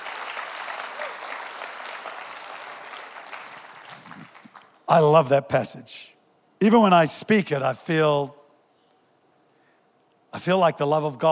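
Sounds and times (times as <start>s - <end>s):
people clapping: 0.0s - 4.9s
speech: 4.9s - 8.4s, 10.3s - 11.3s.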